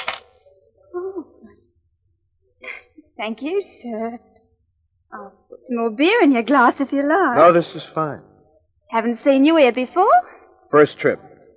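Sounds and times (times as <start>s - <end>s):
coins of change being handed over: 0.0s - 0.2s
speech: 3.2s - 4.3s, 5.1s - 8.3s, 8.9s - 11.3s
low vocal murmur: 7.4s - 8.2s.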